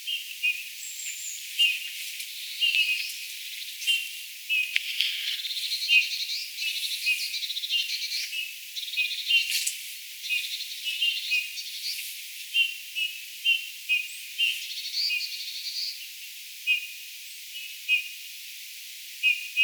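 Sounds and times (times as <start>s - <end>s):
Eurasian bullfinch singing: 0.0s - 12.0s, 12.6s - 16.1s.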